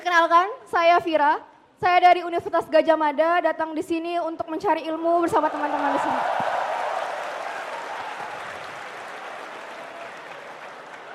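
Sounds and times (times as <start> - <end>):
speech: 0.1 - 6.4
audience applause: 5.4 - 11.1.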